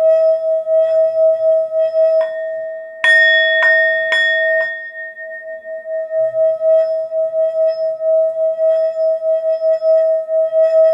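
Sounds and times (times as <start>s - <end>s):
Tibetan singing bowl ringing: 0.1s - 10.9s
sharp metallic strikes: 3.1s - 5.7s.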